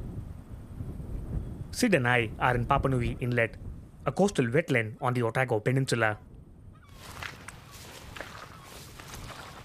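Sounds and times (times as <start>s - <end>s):
steady rush of wind noise: 0.0s - 4.6s, 6.2s - 9.6s
speech: 1.7s - 6.3s
footsteps squelching across tidal mud flats: 6.9s - 9.6s.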